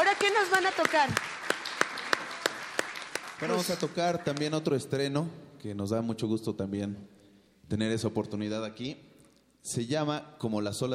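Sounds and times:
audience applause: 0.0 - 4.5
speech: 0.2 - 1.3, 3.4 - 10.9.

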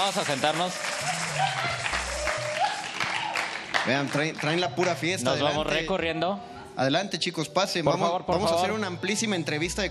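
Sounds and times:
speech: 0.0 - 2.4, 3.8 - 9.9
studio applause for arriving guests: 0.0 - 5.3.

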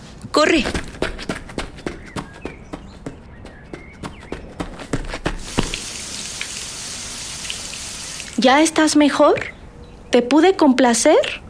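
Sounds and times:
speech: 0.4 - 0.9, 8.4 - 11.4
water being poured onto someone: 5.4 - 8.4.

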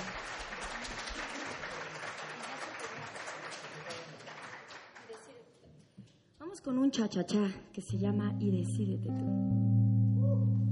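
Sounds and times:
audience applause: 0.0 - 5.3
speech: 6.6 - 10.6.

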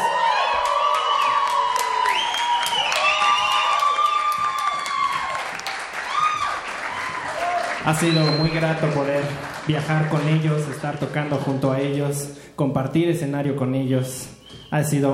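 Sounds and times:
cheers, whoops and high shouted voices: 0.0 - 8.4
audience applause: 0.0 - 11.7
speech: 7.9 - 15.1.

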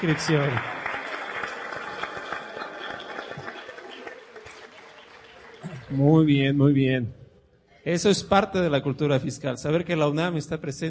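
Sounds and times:
speech: 0.0 - 0.8, 5.9 - 7.2, 7.8 - 10.8
audience applause: 0.0 - 6.2.

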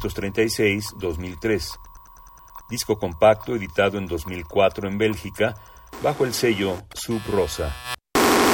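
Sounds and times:
speech: 0.0 - 1.9, 2.7 - 8.0
harsh electronic noise music: 0.0 - 8.4.

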